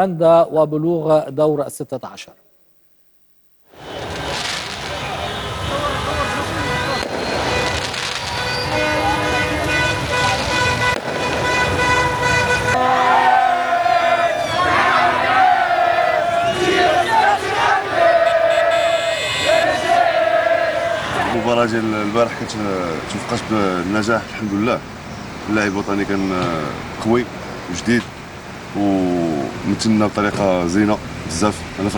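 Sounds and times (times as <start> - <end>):
speech: 0.0 - 2.4, 21.5 - 31.9
rumbling traffic: 3.7 - 31.9
car horns tooting: 3.8 - 22.4
crowd cheering and shouting in the street: 12.8 - 21.5.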